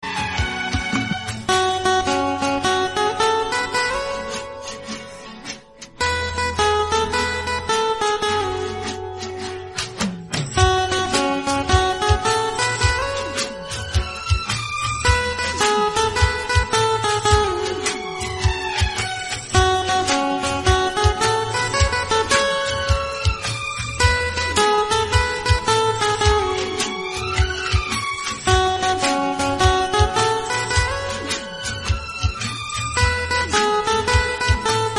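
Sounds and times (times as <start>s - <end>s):
instrumental song: 0.0s - 34.9s.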